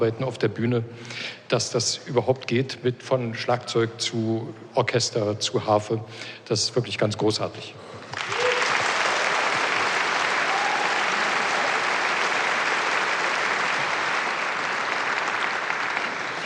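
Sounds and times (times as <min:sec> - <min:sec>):
speech: 0:00.0 - 0:08.4
audience applause: 0:08.1 - 0:16.4.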